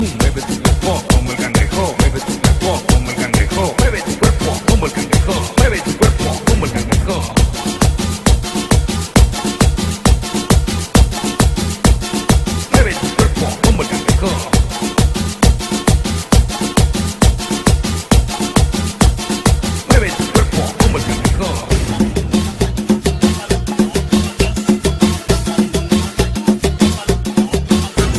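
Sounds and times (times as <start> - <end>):
rhythmic music: 0.0 - 28.1.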